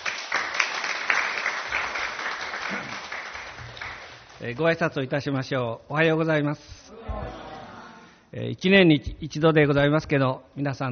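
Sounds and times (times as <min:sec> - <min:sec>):
audience applause welcoming a speaker: 0:00.0 - 0:04.4
speech: 0:04.4 - 0:07.4, 0:08.3 - 0:10.8.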